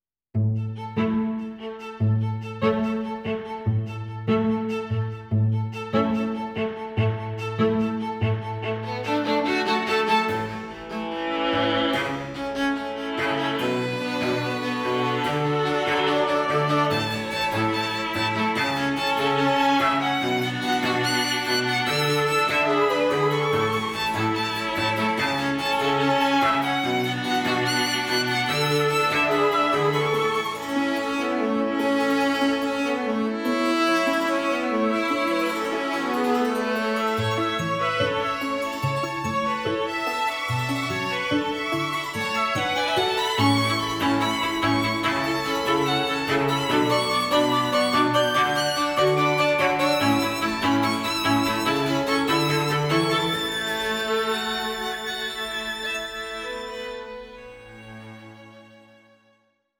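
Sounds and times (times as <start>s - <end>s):
string quartet: 0.4s - 59.4s.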